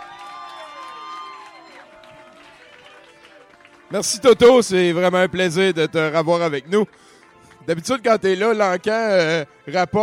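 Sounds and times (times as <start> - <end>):
audience applause and cheering: 0.0 - 5.3
speech: 3.9 - 10.0.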